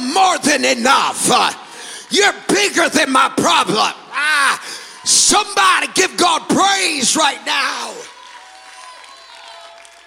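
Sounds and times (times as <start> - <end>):
speech: 0.2 - 8.1
audience clapping hands: 8.0 - 10.0.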